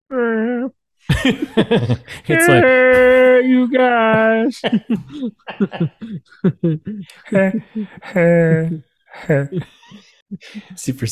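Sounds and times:
laughter: 1.1s - 10.8s
speech: 1.2s - 11.1s
person vocally imitating a dinosaur roar: 2.3s - 4.5s, 7.0s - 9.6s.

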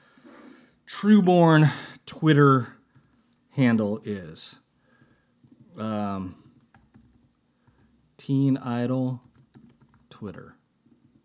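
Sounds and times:
speech: 1.0s - 2.8s, 3.6s - 4.6s, 5.8s - 6.4s, 8.2s - 9.3s, 10.2s - 10.6s
typing on a computer keyboard: 2.9s - 3.4s, 5.0s - 8.0s, 9.1s - 11.2s.

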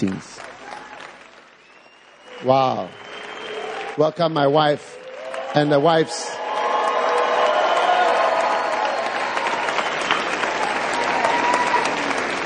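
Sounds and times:
speech: 0.0s - 0.5s, 2.4s - 3.0s, 4.0s - 4.9s, 5.5s - 6.4s
audience applause: 0.0s - 12.4s.

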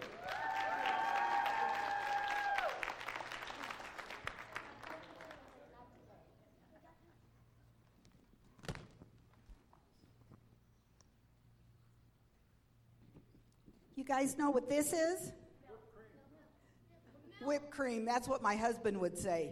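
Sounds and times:
church congregation clapping to welcome a Sunday school teacher: 0.0s - 5.8s
speech: 14.1s - 15.4s, 17.5s - 19.5s.

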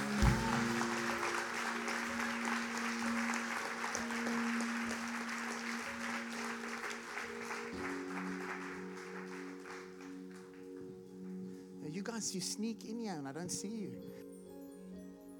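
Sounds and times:
audience applause: 0.0s - 11.0s
speech: 12.0s - 14.2s.

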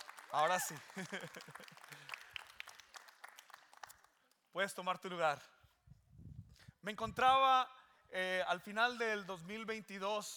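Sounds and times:
audience applause: 0.0s - 4.0s
speech: 0.3s - 2.4s, 4.5s - 5.6s, 6.8s - 10.3s
laughter: 0.6s - 2.1s.

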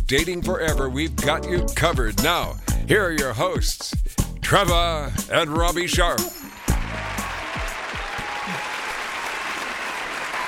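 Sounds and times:
speech: 0.1s - 6.5s
hand clapping: 6.0s - 10.4s.

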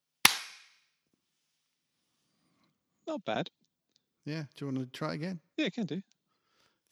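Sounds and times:
hand clap for recording sync: 0.3s - 0.8s
speech: 3.1s - 3.6s, 4.2s - 6.1s.

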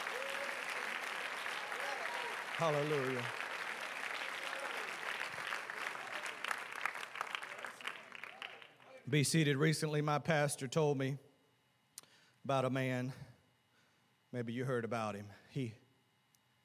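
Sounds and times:
audience clapping: 0.0s - 9.0s
speech: 2.6s - 3.4s, 9.1s - 11.3s, 12.4s - 13.3s, 14.3s - 15.8s.

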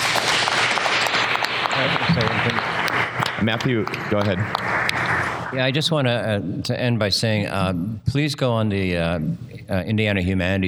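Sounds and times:
audience applause: 0.0s - 5.6s
speech: 3.4s - 4.8s, 5.5s - 10.6s.

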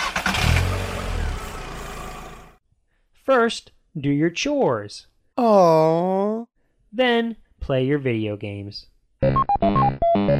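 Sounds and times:
car engine starting and driving: 0.0s - 2.6s
speech: 3.3s - 10.3s.

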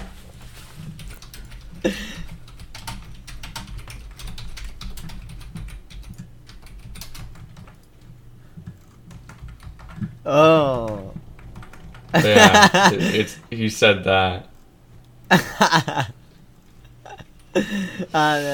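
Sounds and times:
typing on a computer keyboard in a Discord chat: 0.8s - 10.2s, 10.8s - 12.2s
speech: 1.8s - 2.2s, 10.3s - 11.0s, 12.1s - 14.5s, 15.3s - 16.1s, 17.6s - 18.5s
laughter: 12.2s - 13.4s, 15.3s - 16.2s, 16.9s - 18.2s.

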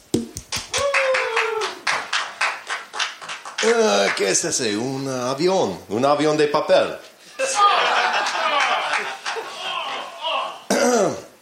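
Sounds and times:
applause: 0.5s - 4.3s, 8.3s - 9.4s
speech: 3.6s - 7.1s
laughter: 7.4s - 10.7s.

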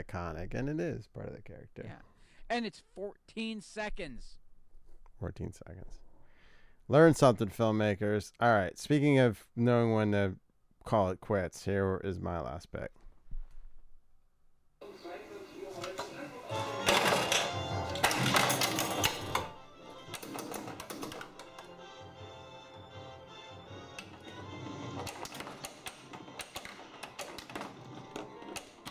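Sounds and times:
speech: 0.0s - 4.4s, 5.2s - 6.0s, 6.9s - 13.0s
Indiana Jones pinball machine being played: 14.8s - 28.9s.

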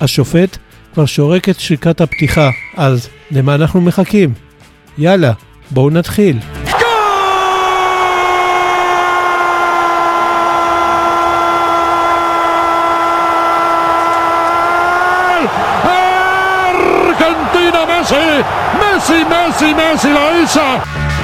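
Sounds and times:
speech: 0.0s - 4.4s, 5.0s - 6.6s, 18.1s - 21.1s
deafening football fans crowd noise: 6.6s - 20.9s.

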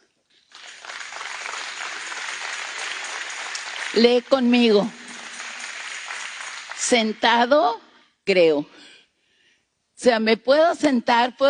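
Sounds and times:
audience applause: 0.5s - 7.2s
speech: 3.9s - 5.0s, 6.9s - 8.9s, 10.0s - 11.4s.

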